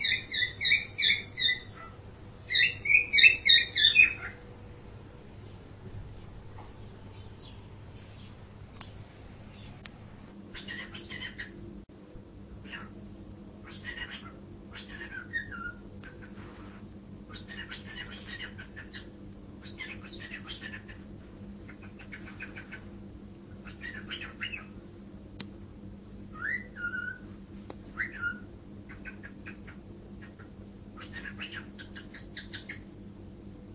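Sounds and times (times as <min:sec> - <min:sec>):
cockatiel: 0:00.0 - 0:04.4, 0:10.5 - 0:11.6, 0:12.6 - 0:13.0, 0:13.6 - 0:22.9, 0:23.5 - 0:24.8, 0:26.3 - 0:32.9.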